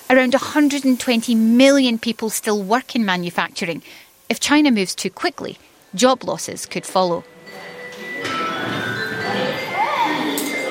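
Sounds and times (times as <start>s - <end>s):
speech: 0.1s - 7.7s
busy murmur: 6.8s - 10.6s
school bell ringing: 6.9s - 10.6s.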